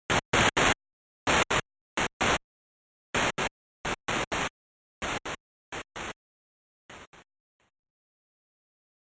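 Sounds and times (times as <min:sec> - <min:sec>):
noise: 0:00.1 - 0:02.5, 0:03.1 - 0:06.2, 0:06.8 - 0:07.8.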